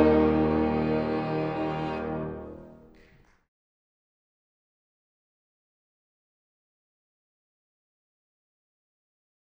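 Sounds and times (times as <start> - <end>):
horn trio: 0.0 - 3.0.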